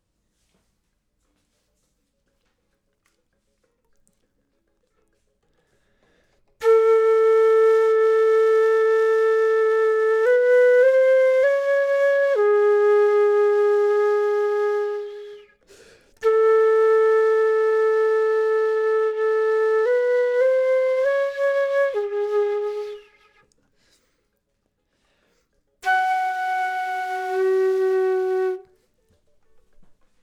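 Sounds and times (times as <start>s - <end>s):
flute: 6.6s - 23.6s, 25.8s - 30.2s.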